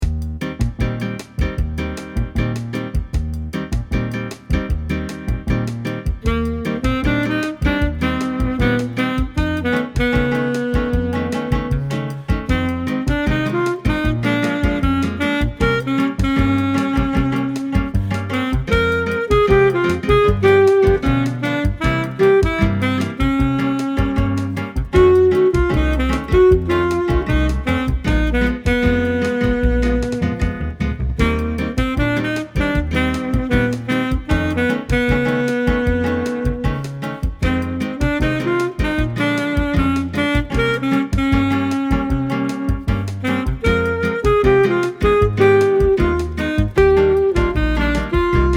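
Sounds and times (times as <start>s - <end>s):
saxophone: 0.0s - 48.5s.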